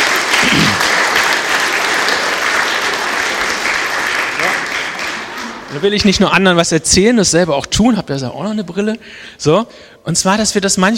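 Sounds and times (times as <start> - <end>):
applause: 0.0 - 6.4
speech: 5.8 - 10.9.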